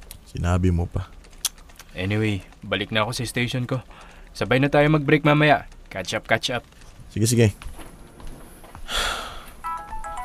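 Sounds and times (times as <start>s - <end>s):
speech: 0.3s - 1.2s, 2.0s - 7.7s
phone ringtone announcing an incoming call: 9.4s - 10.2s.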